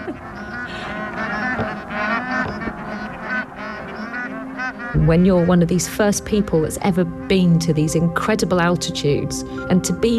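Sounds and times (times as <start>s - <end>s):
flock of geese honking in flight: 0.0s - 8.0s
speech: 5.0s - 10.1s.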